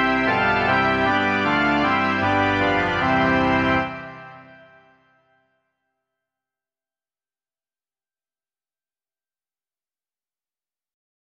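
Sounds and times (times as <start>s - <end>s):
organ: 0.0s - 5.0s.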